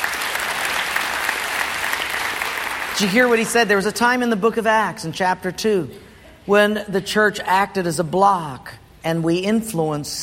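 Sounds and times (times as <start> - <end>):
crowd clapping: 0.0 - 3.6
speech: 3.0 - 10.2.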